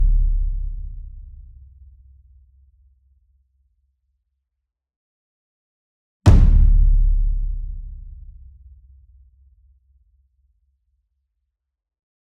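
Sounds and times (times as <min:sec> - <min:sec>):
ensemble taiko drum hit: 0:06.3 - 0:08.4.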